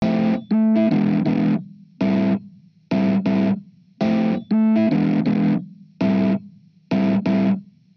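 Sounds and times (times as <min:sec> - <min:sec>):
amplified electric piano: 0:00.0 - 0:02.4, 0:03.0 - 0:06.4
hybrid neural guitar overdrive: 0:00.0 - 0:07.6.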